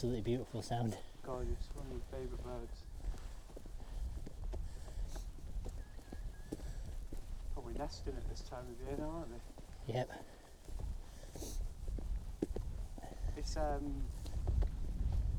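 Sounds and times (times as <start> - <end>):
people chatting: 0.0 - 2.8, 7.6 - 10.3, 13.0 - 14.1
speech: 0.0 - 2.9, 7.7 - 10.4, 13.4 - 14.2
footsteps on a stone flagstone path: 0.0 - 15.3.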